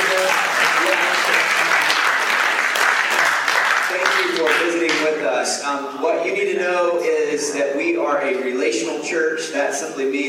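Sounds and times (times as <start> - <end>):
church congregation applauding: 0.0 - 5.2
speech: 5.7 - 10.2.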